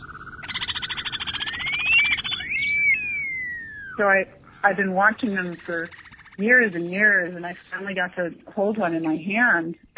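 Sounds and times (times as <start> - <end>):
bird's long wolf whistle call: 0.0 - 4.7
speech: 4.0 - 9.9.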